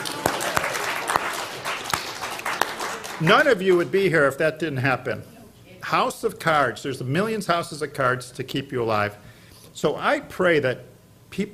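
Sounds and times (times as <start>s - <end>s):
audience clapping: 0.0s - 4.0s
speech: 3.2s - 9.2s, 9.8s - 11.5s.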